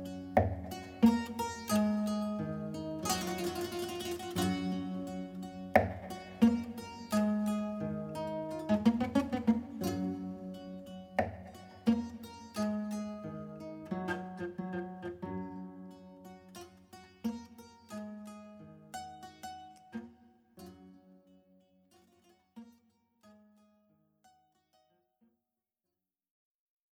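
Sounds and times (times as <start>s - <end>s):
kora playing a piece: 0.0s - 15.8s.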